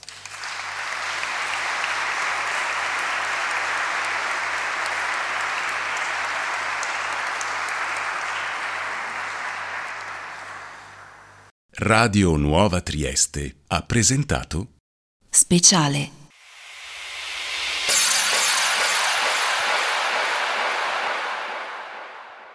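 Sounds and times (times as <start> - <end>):
audience applause: 0.0 - 11.5, 17.9 - 22.5
speech: 11.8 - 14.8, 15.4 - 16.2.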